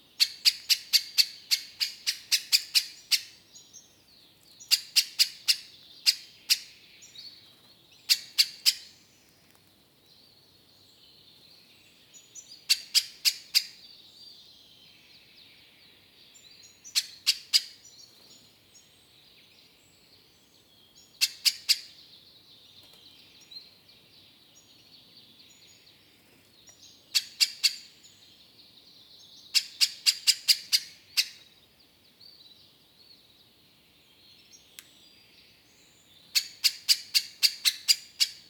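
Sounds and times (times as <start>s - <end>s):
birds in woodland: 0.0s - 38.4s.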